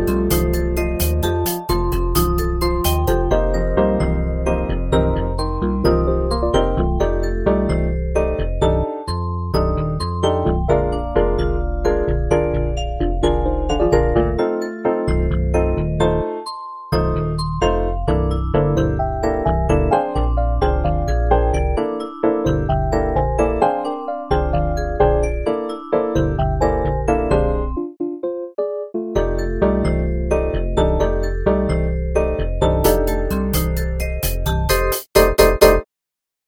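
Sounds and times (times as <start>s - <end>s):
Rhodes electric piano: 0.0s - 35.8s.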